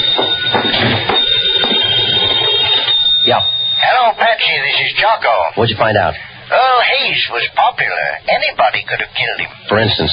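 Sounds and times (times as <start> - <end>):
telephone ringing: 0.0 - 5.1
speech: 3.3 - 10.1.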